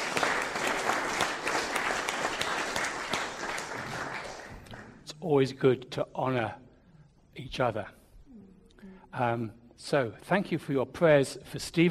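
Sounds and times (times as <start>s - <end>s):
crowd applauding: 0.0s - 5.0s
speech: 5.2s - 6.6s, 7.4s - 8.0s, 9.2s - 11.8s.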